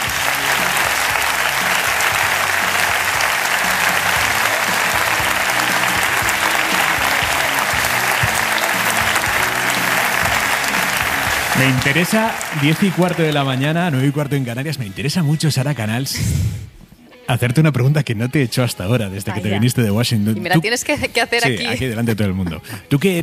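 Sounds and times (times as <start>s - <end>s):
audience applauding: 0.0s - 14.7s
speech: 11.6s - 16.7s, 17.3s - 23.2s.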